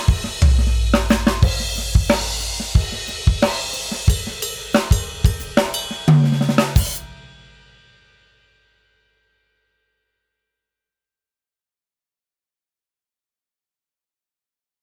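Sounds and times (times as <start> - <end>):
hi-hats: 0.0 - 6.0
crash cymbals: 0.0 - 6.1.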